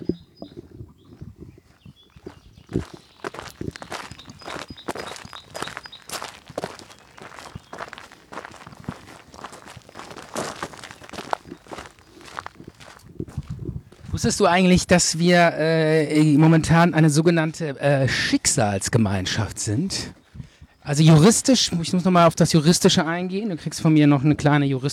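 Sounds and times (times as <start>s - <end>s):
footsteps walking on a gravel path: 0.4s - 15.2s
speech: 2.8s - 3.0s, 14.2s - 20.2s, 20.9s - 24.9s.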